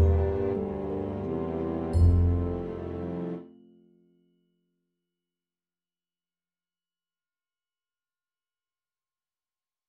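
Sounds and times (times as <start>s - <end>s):
tuba melody: 0.0s - 3.5s.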